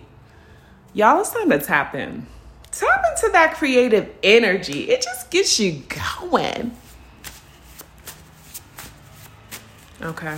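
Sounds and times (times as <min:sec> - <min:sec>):
speech: 0:00.9 - 0:06.8, 0:10.0 - 0:10.3
playing cards being shuffled and pulled from the deck: 0:06.8 - 0:10.3.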